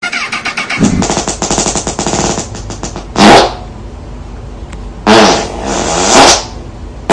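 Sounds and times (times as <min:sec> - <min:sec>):
rapid machine gun fart sounds: 0:00.6 - 0:03.6, 0:05.0 - 0:07.1.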